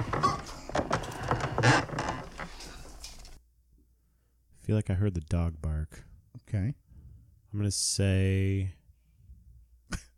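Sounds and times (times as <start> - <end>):
creaking and scraping in a played recording: 0.0 - 3.4
speech: 4.7 - 6.8, 7.5 - 8.8.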